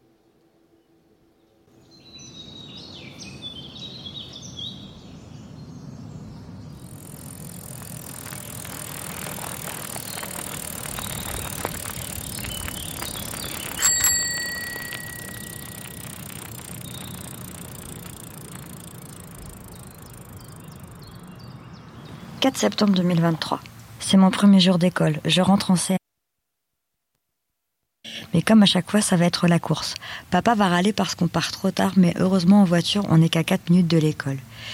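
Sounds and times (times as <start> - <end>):
bicycle rolling hiss: 6.5 - 22.4
bicycle bell ringing in Saint-Sulpice: 12.4 - 20.8
speech: 22.4 - 26.0, 28.5 - 34.7.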